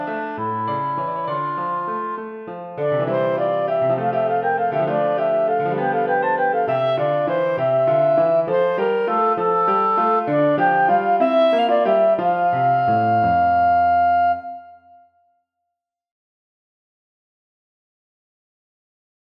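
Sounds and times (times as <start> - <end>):
clarinet playing a gigue: 0.0 - 15.3
piano playing a gigue: 0.0 - 15.3.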